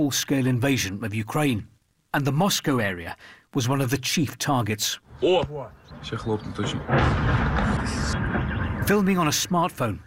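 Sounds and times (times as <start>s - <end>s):
speech: 0.0s - 10.0s
drone strike on a block of flats: 6.0s - 8.9s.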